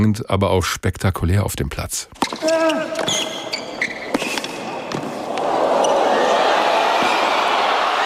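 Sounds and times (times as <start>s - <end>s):
speech: 0.0s - 3.4s
tennis match with crowd reacting: 2.1s - 8.0s.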